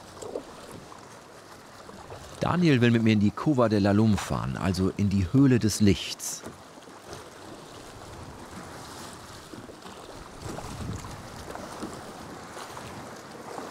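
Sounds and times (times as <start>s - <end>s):
rough sea waves sloshing around a moving boat: 0.0s - 13.7s
speech: 2.4s - 6.6s
gusty wind: 10.4s - 11.4s.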